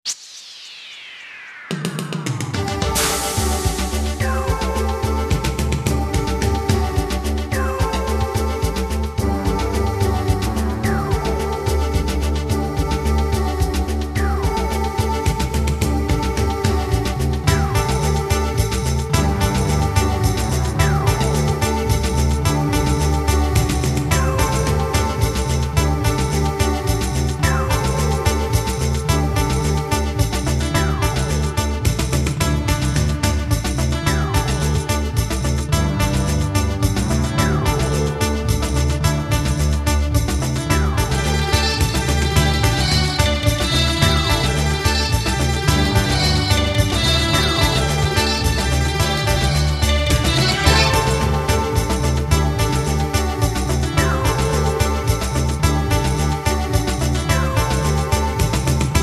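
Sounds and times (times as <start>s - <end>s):
news background music: 2.2s - 59.0s.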